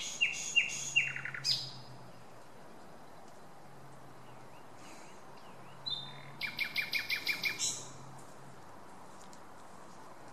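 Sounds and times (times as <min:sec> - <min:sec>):
common nightingale song: 0:00.0 - 0:08.0.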